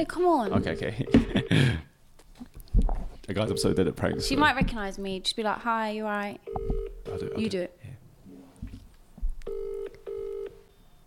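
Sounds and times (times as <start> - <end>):
speech: 0.0 - 1.9, 3.3 - 7.9
telephone ringing during a prank phone call: 0.3 - 1.6, 3.4 - 4.5, 6.5 - 7.5, 9.5 - 10.6.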